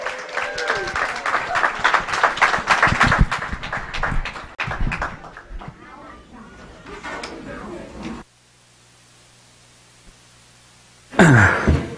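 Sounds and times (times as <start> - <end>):
audience applause: 0.0 - 5.8.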